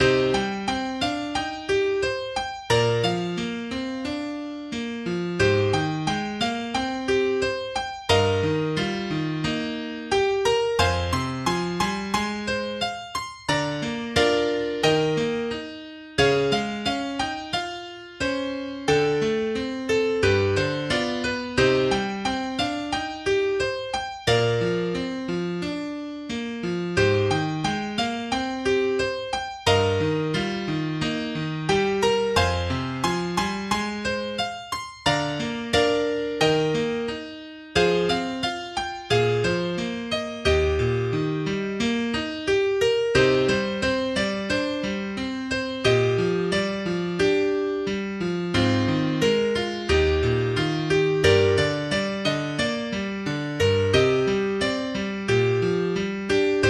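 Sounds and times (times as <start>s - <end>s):
opening theme on piano: 0.0s - 56.6s.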